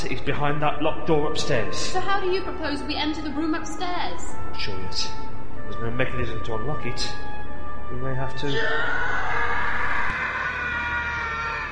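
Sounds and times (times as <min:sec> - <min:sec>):
speech: 0:00.0 - 0:07.3, 0:07.9 - 0:09.7
scream: 0:08.5 - 0:11.7.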